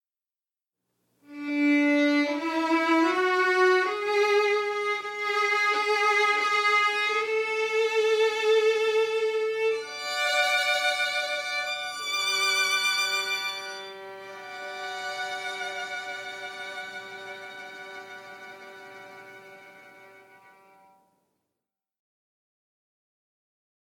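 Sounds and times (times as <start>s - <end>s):
violin intro: 1.3s - 21.0s.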